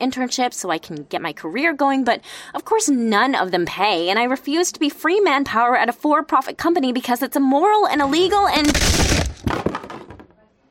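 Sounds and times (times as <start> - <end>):
speech: 0.0 - 9.9
chair breaking: 8.0 - 10.4.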